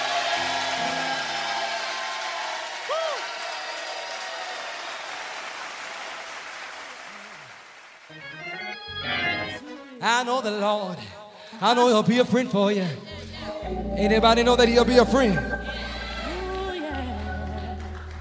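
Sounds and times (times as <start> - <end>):
audience clapping hands: 0.0 - 8.8, 16.2 - 18.1
speech: 10.0 - 13.1, 13.7 - 15.6.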